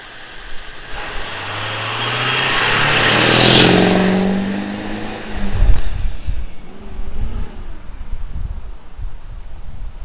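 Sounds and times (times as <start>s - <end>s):
Duramax vehicle driving by: 0.0s - 7.9s.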